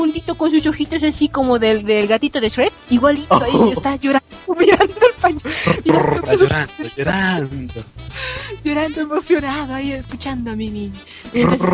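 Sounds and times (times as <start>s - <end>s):
speech: 0.2s - 11.7s
animal growling: 3.3s - 4.0s, 5.5s - 6.7s, 11.4s - 11.7s.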